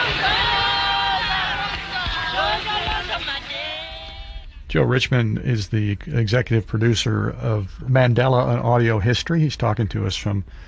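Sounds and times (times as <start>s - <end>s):
large crowd shouting outside court: 0.0s - 4.4s
speech: 4.7s - 10.6s.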